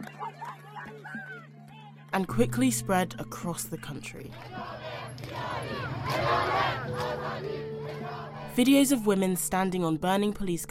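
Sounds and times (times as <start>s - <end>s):
speech: 2.1s - 7.6s, 8.6s - 10.7s
protest crowd chanting: 4.3s - 8.6s.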